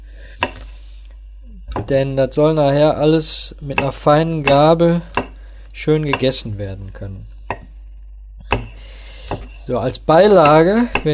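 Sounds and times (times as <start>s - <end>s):
faint low hum: 0.0s - 11.1s
knife chopping food into cubes on a board: 0.4s - 0.7s, 3.7s - 5.4s, 6.1s - 6.4s, 8.5s - 9.6s, 10.4s - 11.1s
speech: 1.8s - 5.2s, 5.8s - 7.3s, 9.7s - 11.1s.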